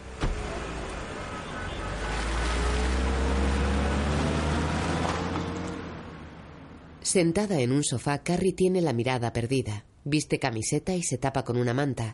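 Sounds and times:
car driving away: 0:00.0 - 0:06.8
speech: 0:07.1 - 0:12.1.

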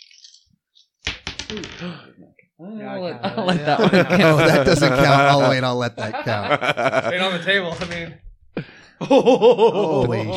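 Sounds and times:
dice rolling on a table: 0:00.0 - 0:01.8
speech: 0:01.5 - 0:10.3
laughter: 0:03.0 - 0:07.6, 0:09.0 - 0:10.3.

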